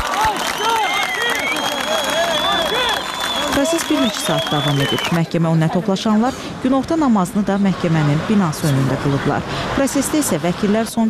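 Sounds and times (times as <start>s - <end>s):
supporters clapping outside a courthouse: 0.0s - 5.3s
raised voices and calls: 0.0s - 5.9s
speech: 3.6s - 11.0s.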